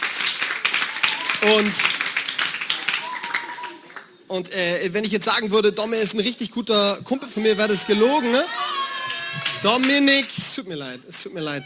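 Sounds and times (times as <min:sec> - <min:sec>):
audience applause: 0:00.0 - 0:04.2, 0:08.3 - 0:10.4
speech: 0:01.4 - 0:02.0, 0:04.3 - 0:08.8, 0:09.6 - 0:11.6.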